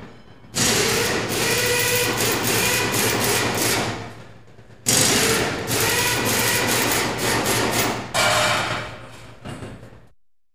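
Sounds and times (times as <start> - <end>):
pneumatic impact wrench under light load: 0.6 - 4.1, 4.8 - 8.6.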